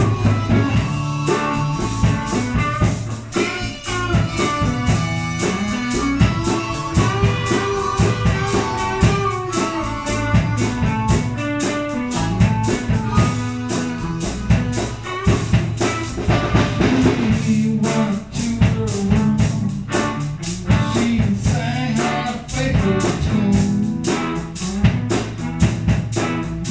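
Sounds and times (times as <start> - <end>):
vocals: 0.0 - 11.2, 16.6 - 25.2
bass guitar: 0.0 - 26.6
drums: 0.0 - 26.6
harmonica: 0.0 - 26.6.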